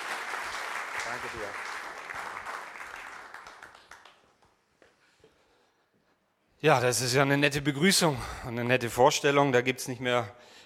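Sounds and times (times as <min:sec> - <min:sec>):
audience applause: 0:00.0 - 0:04.6
speech: 0:01.1 - 0:01.8, 0:06.6 - 0:10.6.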